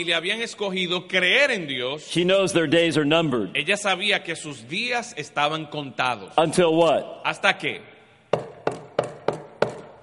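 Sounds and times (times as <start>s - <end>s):
speech: 0.0s - 7.9s
knocking on a door: 8.3s - 10.0s.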